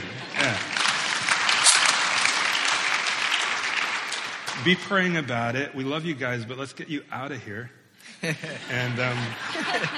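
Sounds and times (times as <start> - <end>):
laughter: 0.0 - 1.1, 8.0 - 9.9
audience clapping: 0.0 - 5.4
speech: 4.6 - 9.9.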